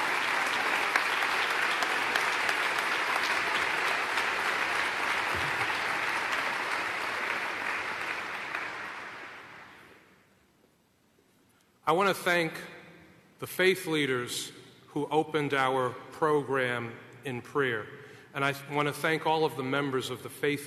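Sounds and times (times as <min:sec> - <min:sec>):
audience applause: 0:00.0 - 0:09.9
speech: 0:11.9 - 0:12.7, 0:13.4 - 0:20.6.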